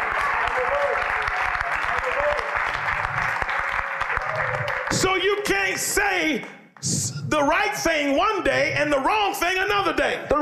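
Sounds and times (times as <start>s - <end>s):
audience applause: 0.0s - 5.8s
speech: 5.0s - 10.4s.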